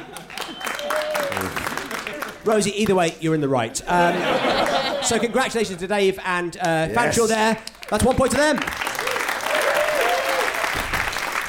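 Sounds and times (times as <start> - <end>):
audience applause: 0.0 - 2.5, 7.8 - 11.4
faint whistle: 0.4 - 1.4
speech: 2.4 - 8.8
laughter: 3.8 - 5.4.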